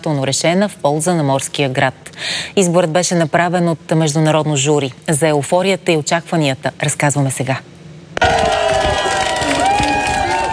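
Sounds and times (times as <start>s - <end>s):
speech: 0.0s - 7.8s
crowd in Burgas cheering: 8.2s - 10.5s.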